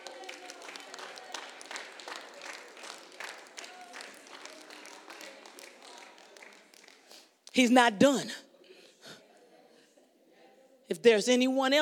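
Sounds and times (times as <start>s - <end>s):
audience clapping hands: 0.0s - 7.6s
speech: 7.6s - 8.4s, 11.0s - 11.8s.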